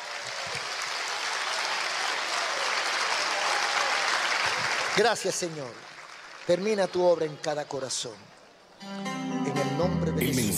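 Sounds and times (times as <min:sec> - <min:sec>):
audience clapping: 0:00.0 - 0:07.6
speech: 0:05.0 - 0:10.5.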